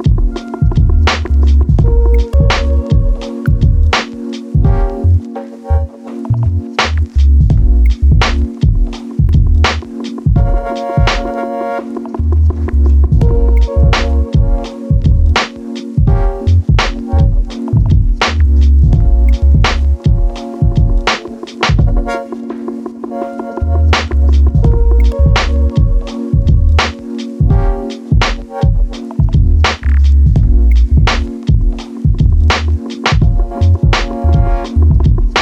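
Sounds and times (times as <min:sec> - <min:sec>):
natural swing LFO modulation: 0:00.0 - 0:35.4.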